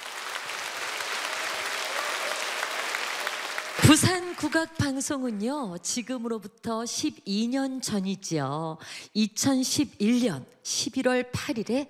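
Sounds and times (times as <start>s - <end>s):
audience applause: 0.0s - 4.6s
speech: 3.9s - 11.8s.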